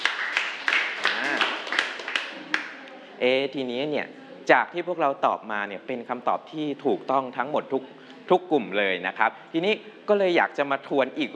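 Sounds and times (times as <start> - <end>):
group clapping: 0.0 - 3.0
speech: 3.2 - 11.3.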